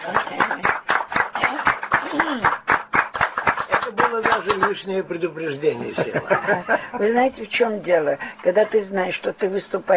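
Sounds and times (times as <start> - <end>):
audience applause: 0.0 - 4.8
speech: 2.3 - 2.6, 4.4 - 9.9
laughter: 5.8 - 7.2.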